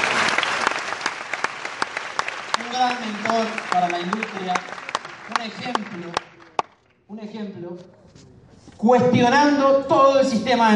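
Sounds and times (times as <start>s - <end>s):
loud applause: 0.0s - 6.8s
speech: 2.8s - 6.3s, 7.1s - 10.7s.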